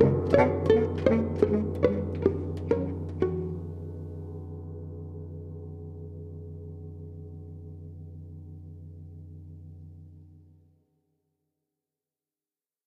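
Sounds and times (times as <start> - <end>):
lead melody: 0.0 - 4.3.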